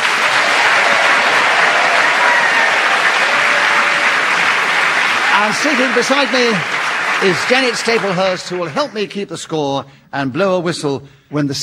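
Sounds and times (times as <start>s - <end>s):
audience applause welcoming panellists: 0.0s - 9.2s
speech: 5.4s - 11.6s.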